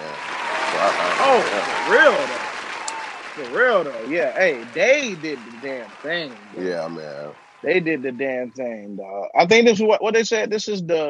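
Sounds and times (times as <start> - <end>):
laughter: 0.0 - 2.4, 3.4 - 10.8
applause: 0.0 - 8.4
speech: 0.8 - 2.4, 3.4 - 11.0.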